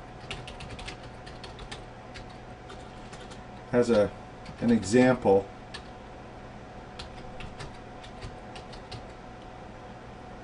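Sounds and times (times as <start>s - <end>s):
typing on a computer keyboard into an email editor: 0.2s - 4.8s, 7.0s - 9.2s
speech: 3.7s - 5.6s.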